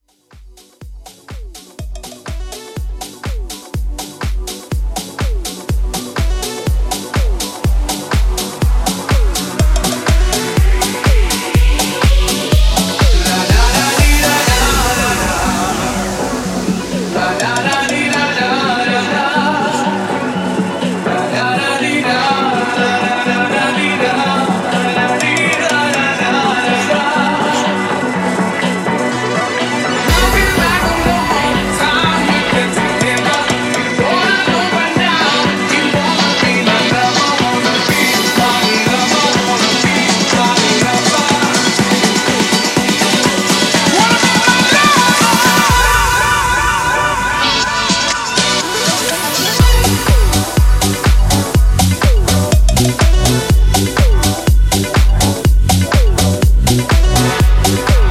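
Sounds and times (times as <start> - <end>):
future house intro: 0.0 - 58.0.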